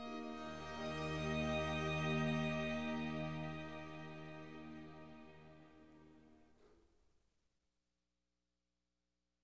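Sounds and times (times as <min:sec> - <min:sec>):
violin concerto in F minor: 0:00.0 - 0:06.4.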